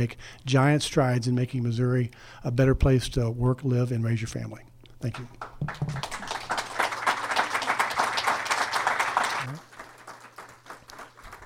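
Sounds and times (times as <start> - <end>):
speech: 0.0 - 6.3
applause: 5.0 - 11.4.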